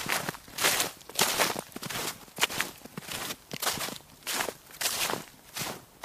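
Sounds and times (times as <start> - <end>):
snow crunching: 0.0 - 6.0.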